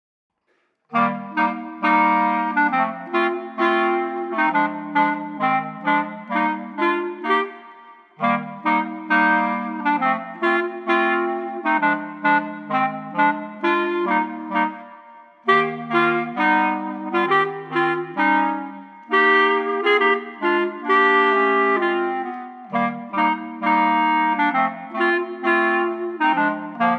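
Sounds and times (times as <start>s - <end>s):
clarinet trio: 0.9s - 26.9s.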